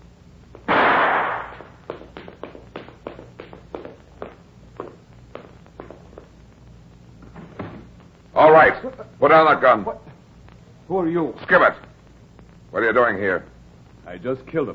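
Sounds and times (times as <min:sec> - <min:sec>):
loud thump: 0:00.7 - 0:01.8
footsteps descending stairs: 0:01.6 - 0:06.4
speech: 0:08.4 - 0:10.0, 0:10.9 - 0:11.9, 0:12.7 - 0:14.7.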